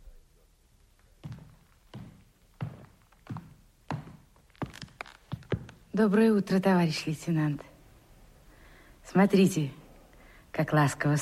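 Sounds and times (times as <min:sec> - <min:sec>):
nurse's footsteps along a corridor: 0:00.9 - 0:06.4
speech: 0:06.0 - 0:07.7, 0:09.2 - 0:09.8, 0:10.6 - 0:11.2.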